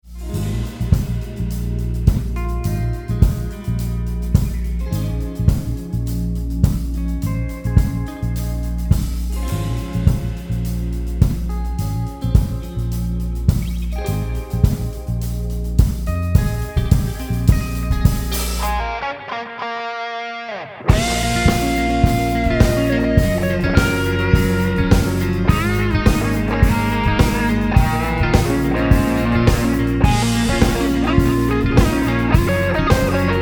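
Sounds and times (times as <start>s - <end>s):
instrumental music: 0.0s - 33.3s.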